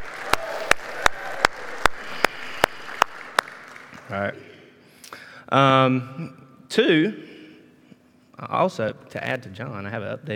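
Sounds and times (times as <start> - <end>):
audience clapping: 0.0 - 4.6
speech: 4.1 - 4.5, 5.5 - 7.3, 8.4 - 10.3.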